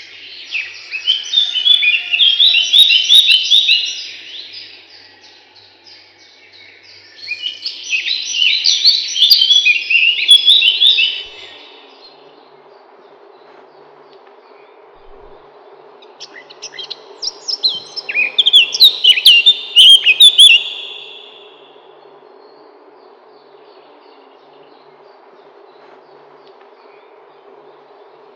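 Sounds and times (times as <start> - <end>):
Eurasian blackcap song: 0.0 - 12.3, 16.0 - 21.8.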